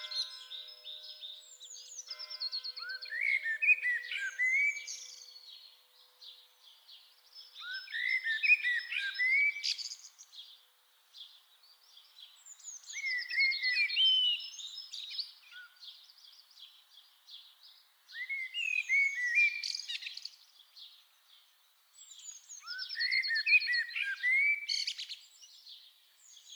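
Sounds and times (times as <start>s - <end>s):
common blackbird singing: 2.8s - 6.3s, 7.5s - 10.1s, 12.5s - 16.4s, 18.1s - 20.3s, 22.1s - 26.5s.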